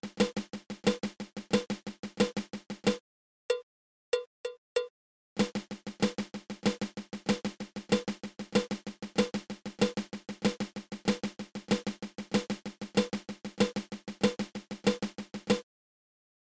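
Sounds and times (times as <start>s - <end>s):
flammed mill snare drum rudiment: 0.0s - 3.0s, 5.4s - 15.6s.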